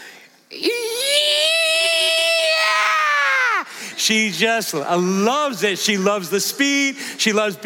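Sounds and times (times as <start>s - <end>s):
speech: 0.5s - 0.7s, 4.0s - 7.6s
adult voice imitating a child's gleeful squeal: 0.6s - 3.7s.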